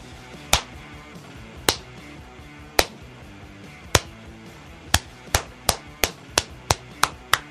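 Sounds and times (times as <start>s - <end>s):
slow clap for the Houston Rockets: 0.5s - 0.8s, 1.7s - 2.0s, 2.8s - 3.0s, 3.9s - 4.2s, 4.9s - 7.4s.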